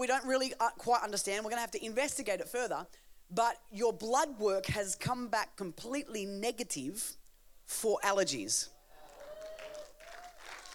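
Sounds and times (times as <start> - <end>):
speech: 0.0 - 8.8
golf clap, soft polite applause: 8.9 - 10.7.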